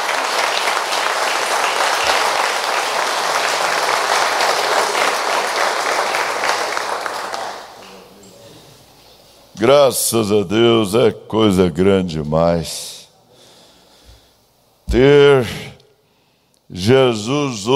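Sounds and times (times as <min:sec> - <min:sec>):
audience applause: 0:00.0 - 0:08.2
speech: 0:09.6 - 0:12.9, 0:14.9 - 0:15.6, 0:16.7 - 0:17.7.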